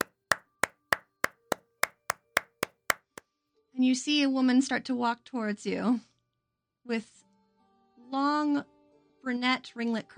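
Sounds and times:
clapping: 0.0s - 0.3s, 1.2s - 3.2s
speech: 3.8s - 6.1s, 6.9s - 7.2s, 8.1s - 10.1s.

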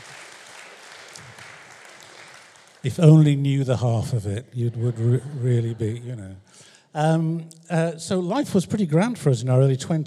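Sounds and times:
audience applause: 0.0s - 4.0s, 4.6s - 6.2s
speech: 2.8s - 10.0s
laughter: 2.9s - 7.2s.

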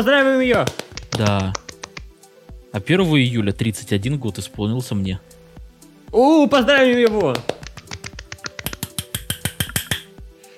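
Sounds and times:
speech: 0.0s - 1.6s, 2.7s - 5.4s, 6.1s - 7.6s
person slapping own belly: 0.4s - 2.2s, 6.8s - 10.2s.

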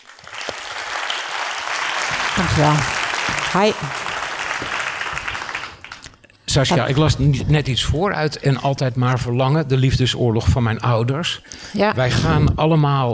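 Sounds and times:
audience applause: 0.0s - 6.2s
speech: 2.4s - 4.0s, 6.5s - 13.1s.

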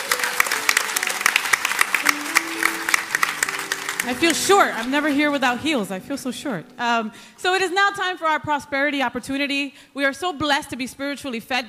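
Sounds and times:
crowd applauding: 0.0s - 5.6s
speech: 4.0s - 11.6s.

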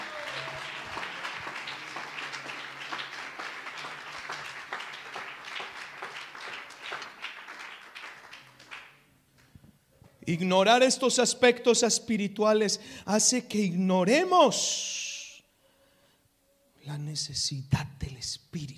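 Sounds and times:
audience applauding: 0.0s - 9.0s
speech: 10.3s - 15.0s, 17.2s - 18.7s.

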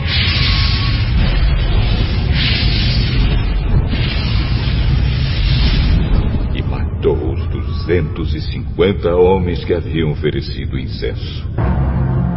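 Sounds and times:
roaring fire blast sound effect: 0.0s - 7.8s
speech: 8.2s - 11.9s.

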